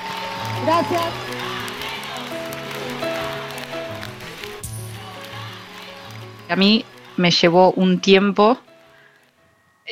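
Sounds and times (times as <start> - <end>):
crowd voices and cheers: 0.0 - 7.2
audience applause: 0.0 - 7.4
speech: 0.6 - 1.4, 6.5 - 8.7.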